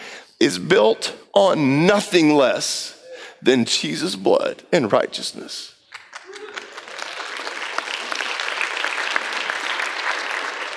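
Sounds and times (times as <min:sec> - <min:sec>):
speech: 0:00.4 - 0:05.8
polite light golf clap applause: 0:05.9 - 0:10.7.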